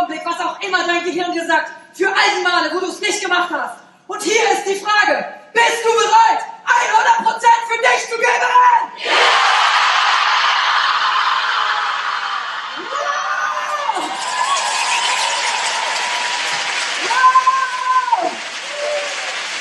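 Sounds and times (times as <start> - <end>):
speech: 0.1 - 9.8
large crowd roaring and cheering: 8.9 - 19.6
whoops and yells: 10.3 - 19.4.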